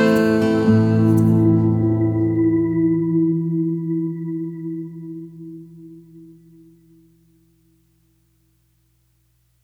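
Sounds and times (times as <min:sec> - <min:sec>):
jingle: 0:00.0 - 0:04.5.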